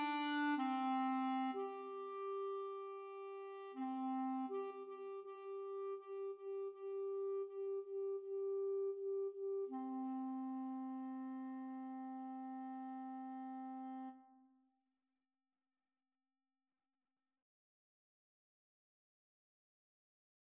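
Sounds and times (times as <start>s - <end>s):
clarinet duet playing a pavane: 0.0s - 14.4s.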